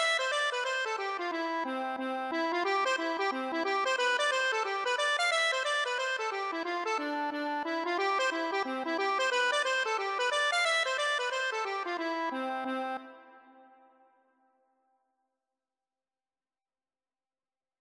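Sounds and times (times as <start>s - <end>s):
accordion playing a hornpipe: 0.0s - 13.7s.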